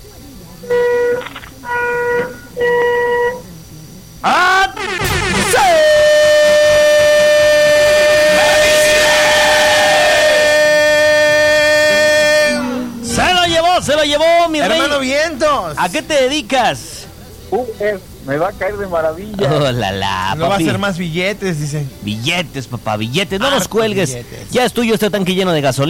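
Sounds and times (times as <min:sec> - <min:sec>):
speech: 0:00.6 - 0:00.8, 0:15.7 - 0:16.9, 0:17.5 - 0:25.8
car horn honking: 0:00.6 - 0:03.6, 0:04.3 - 0:15.5.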